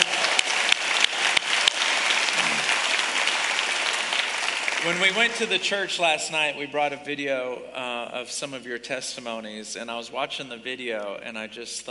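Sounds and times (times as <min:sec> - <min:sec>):
applause: 0:00.0 - 0:06.2
speech: 0:04.8 - 0:11.8.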